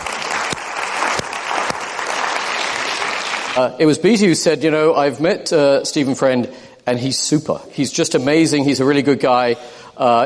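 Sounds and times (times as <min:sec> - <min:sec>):
crowd applause: 0:00.0 - 0:03.7
speech: 0:03.6 - 0:10.2.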